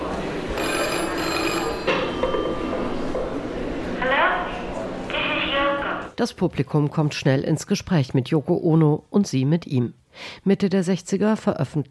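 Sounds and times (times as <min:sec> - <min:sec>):
low murmur: 0:00.0 - 0:06.2
telephone ringing in an art recording: 0:00.5 - 0:03.2
speech: 0:06.2 - 0:11.8.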